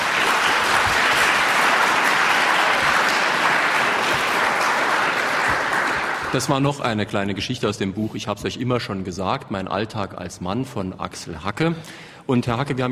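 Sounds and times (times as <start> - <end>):
sustained audience applause: 0.0 - 6.8
speech: 6.3 - 12.8.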